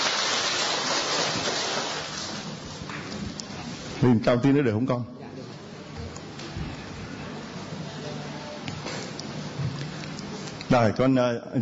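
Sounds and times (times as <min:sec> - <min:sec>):
audience applause: 0:00.0 - 0:02.4
speech: 0:04.0 - 0:05.2, 0:10.7 - 0:11.5.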